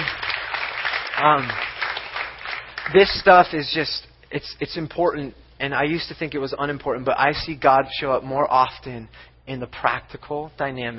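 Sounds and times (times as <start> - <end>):
audience applause: 0.0 - 3.1
speech: 1.2 - 1.7, 2.9 - 10.9.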